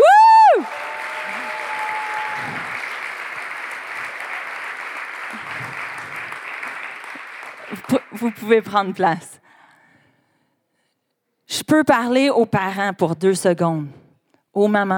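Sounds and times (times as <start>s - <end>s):
audience applauding: 0.0s - 9.0s
speech: 8.2s - 9.4s, 11.7s - 14.0s, 14.6s - 14.9s.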